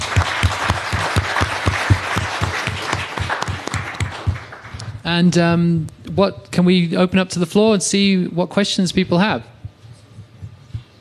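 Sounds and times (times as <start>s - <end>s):
audience applause: 0.0s - 5.0s
speech: 5.1s - 9.6s.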